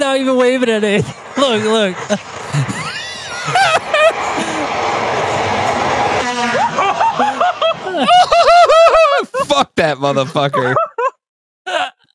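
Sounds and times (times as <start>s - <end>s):
loud train passing by: 0.0s - 9.0s
speech: 0.2s - 3.8s, 9.8s - 10.9s
laughter: 0.4s - 5.0s, 6.2s - 11.9s.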